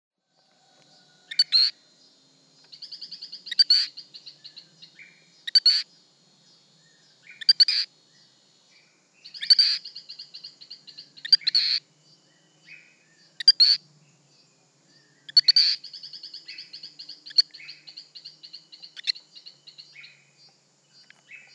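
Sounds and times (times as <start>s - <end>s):
Torrent frog Hylodes phyllodes chirping: 1.3s - 1.8s, 2.6s - 5.9s, 7.2s - 7.9s, 9.2s - 11.9s, 12.6s - 13.8s, 15.2s - 20.2s.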